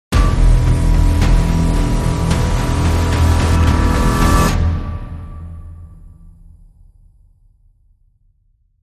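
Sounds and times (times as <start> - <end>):
crime music sting: 0.2 - 6.0.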